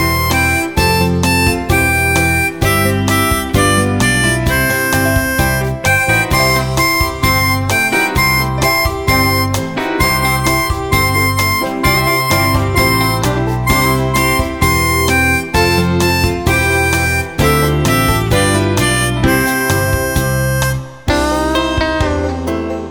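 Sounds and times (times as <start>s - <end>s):
blues harmonica: 0.0s - 22.8s.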